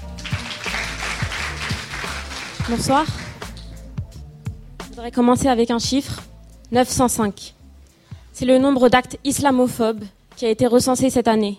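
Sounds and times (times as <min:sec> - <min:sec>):
audience applause: 0:00.2 - 0:03.6
speech: 0:02.7 - 0:03.2, 0:05.0 - 0:07.6, 0:08.4 - 0:11.5.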